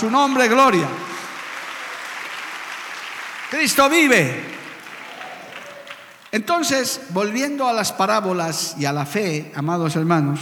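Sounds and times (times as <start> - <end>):
speech: 0.0 - 1.0, 3.5 - 4.6, 6.3 - 10.4
audience applauding: 0.0 - 6.8.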